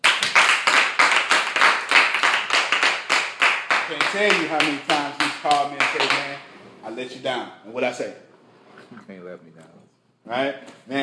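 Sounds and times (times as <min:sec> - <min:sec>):
audience clapping: 0:00.0 - 0:06.6
speech: 0:03.9 - 0:08.2, 0:08.9 - 0:11.0.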